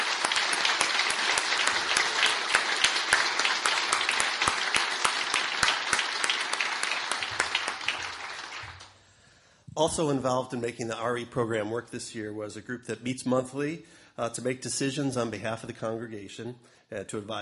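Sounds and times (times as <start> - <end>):
round of applause: 0.0 - 9.0
speech: 9.8 - 17.3.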